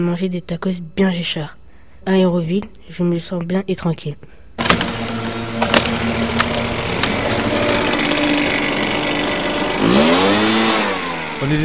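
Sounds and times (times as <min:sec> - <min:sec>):
speech: 0:00.0 - 0:04.4, 0:06.1 - 0:06.7, 0:11.4 - 0:11.6
leaf blower engine running: 0:04.6 - 0:11.6.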